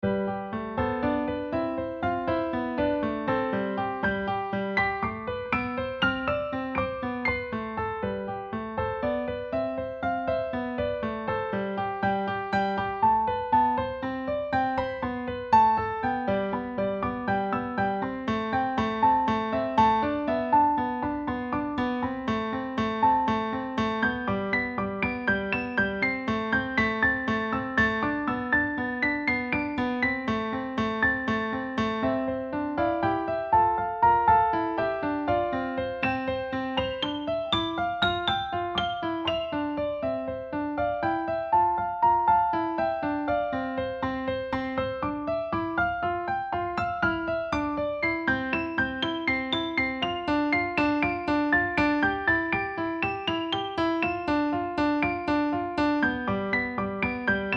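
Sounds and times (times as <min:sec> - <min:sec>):
piano: 0:00.0 - 0:57.5.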